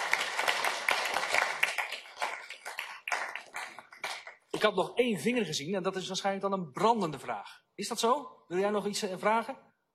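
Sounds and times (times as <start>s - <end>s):
audience applause: 0.0s - 4.5s
speech: 4.6s - 9.7s.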